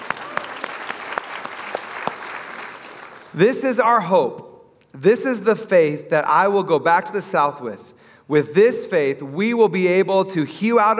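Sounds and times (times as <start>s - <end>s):
audience applause: 0.0s - 3.3s
speech: 3.4s - 10.9s.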